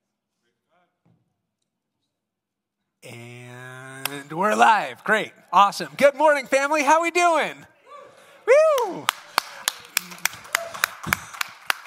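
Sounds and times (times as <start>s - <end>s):
sharp hand claps: 4.0s - 4.2s, 8.6s - 11.8s
speech: 4.3s - 7.7s.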